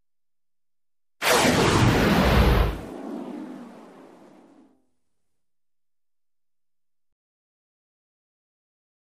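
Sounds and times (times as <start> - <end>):
flaming debris flying by: 1.2 - 4.7.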